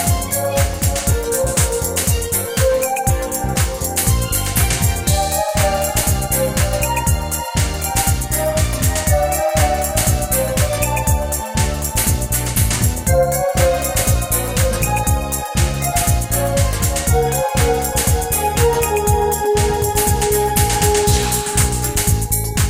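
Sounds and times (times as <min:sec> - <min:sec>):
ambience: 0:00.0 - 0:22.6.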